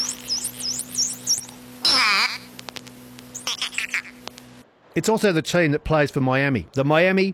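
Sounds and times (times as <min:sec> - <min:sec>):
dolphin calls: 0:00.0 - 0:02.6, 0:03.3 - 0:04.2
speech: 0:05.0 - 0:07.3.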